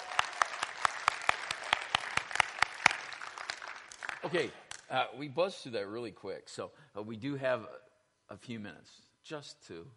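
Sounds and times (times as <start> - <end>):
audience applause: 0.0 - 4.5
speech: 4.2 - 9.9.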